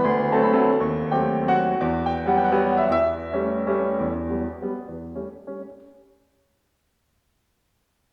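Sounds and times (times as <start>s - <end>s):
waltz music: 0.0s - 6.1s.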